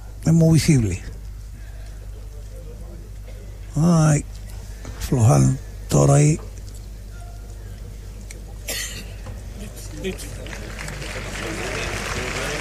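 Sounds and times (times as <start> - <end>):
speech: 0.2 - 1.1, 3.8 - 4.4, 5.1 - 6.5, 10.0 - 10.4
bullring crowd clapping for the bullfighter: 9.6 - 12.5.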